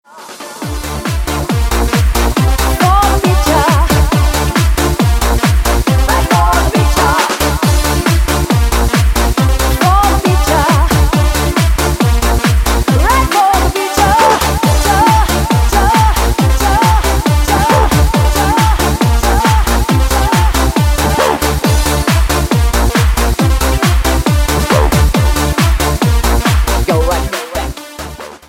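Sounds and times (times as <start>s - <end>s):
Vietnamese dance club music: 0.1s - 28.4s.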